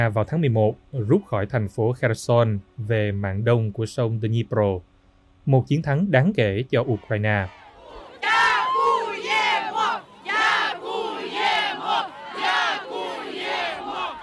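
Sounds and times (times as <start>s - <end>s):
speech: 0.0s - 7.6s
Kherson residents cheering and chanting thanks to Ukrainian soldiers: 6.8s - 14.2s.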